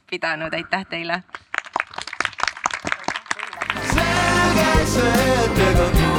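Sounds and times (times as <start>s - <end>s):
speech: 0.1s - 1.4s, 4.6s - 6.0s
audience applause: 1.5s - 5.5s.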